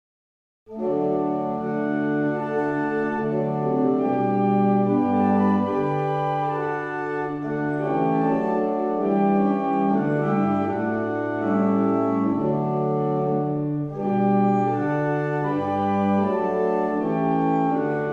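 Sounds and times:
barrel organs: 0:00.7 - 0:18.1.

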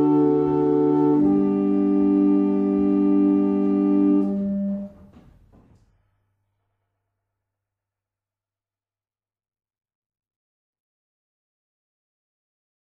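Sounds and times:
German hymn on barrel organ: 0:00.0 - 0:05.0.

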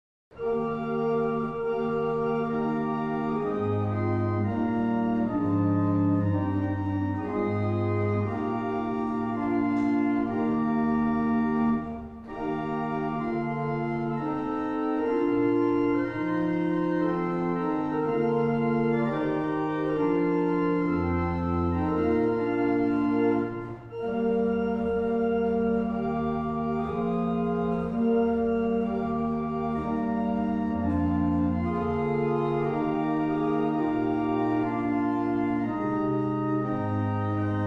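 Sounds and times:
barrel organs: 0:00.3 - 0:37.6.

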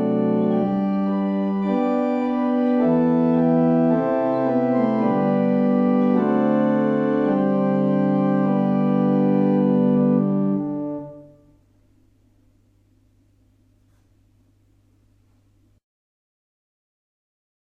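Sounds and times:
barrel organ: 0:00.0 - 0:11.8.

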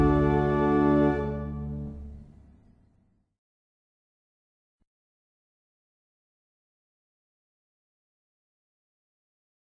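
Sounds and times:
barrel organs playing a hymn: 0:00.0 - 0:02.2.

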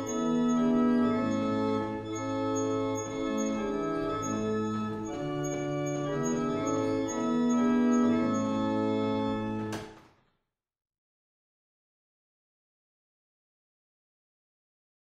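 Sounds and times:
barrel organs playing a single chant: 0:00.0 - 0:09.9.

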